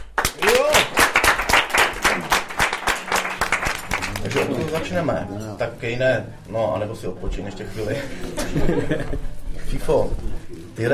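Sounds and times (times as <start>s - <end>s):
audience applause: 0.0s - 5.1s
speech: 4.4s - 10.9s
laughter: 8.0s - 9.6s.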